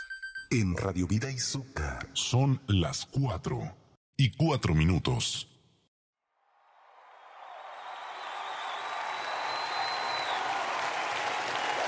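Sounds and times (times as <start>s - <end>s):
speech: 0.5s - 5.5s
crowd applause: 6.8s - 11.8s
faint whistle-like tone: 8.0s - 10.5s.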